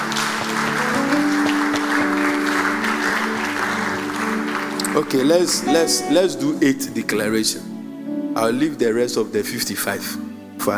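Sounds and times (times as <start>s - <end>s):
audience clapping: 0.0s - 6.2s
speech: 5.0s - 7.8s, 8.4s - 10.7s.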